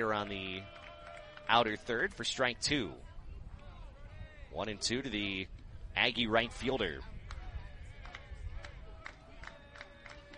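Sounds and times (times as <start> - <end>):
speech: 0.0 - 0.8, 1.5 - 3.1, 4.5 - 7.1
clapping from the Hawaii baseball dugout: 0.0 - 2.0, 7.2 - 10.3.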